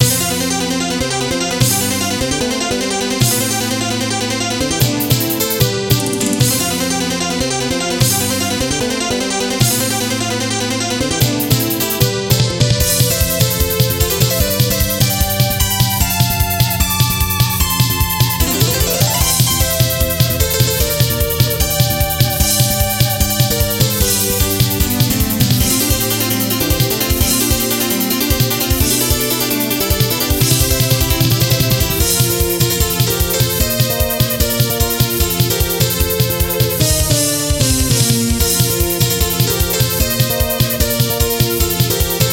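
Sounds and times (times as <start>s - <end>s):
stage background music: 0.0s - 42.3s.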